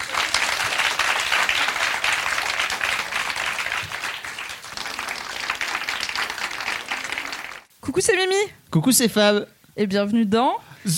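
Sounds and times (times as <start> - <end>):
live audience applause: 0.0 - 7.7
speech: 7.9 - 10.9.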